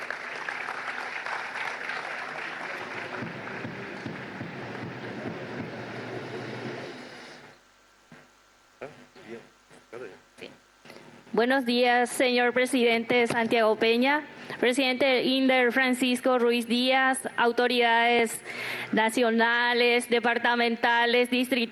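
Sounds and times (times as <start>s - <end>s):
loud audience applause: 0.0s - 6.6s
speech: 11.4s - 21.7s.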